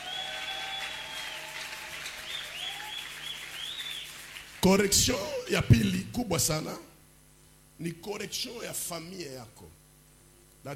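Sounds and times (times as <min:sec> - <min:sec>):
congregation applause in church: 0:00.0 - 0:05.2
speech: 0:04.6 - 0:06.9, 0:07.8 - 0:09.8.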